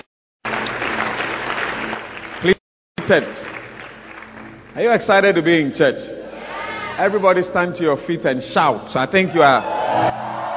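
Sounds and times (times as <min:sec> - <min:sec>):
audience clapping hands: 0:00.0 - 0:05.3
speech: 0:03.1 - 0:03.6, 0:04.8 - 0:06.2, 0:07.0 - 0:10.2.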